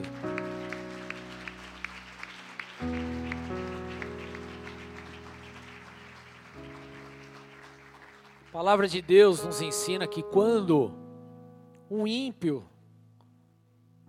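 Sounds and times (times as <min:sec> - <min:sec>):
audience applause: 0:00.0 - 0:09.6
speech: 0:08.6 - 0:11.0, 0:11.9 - 0:12.7.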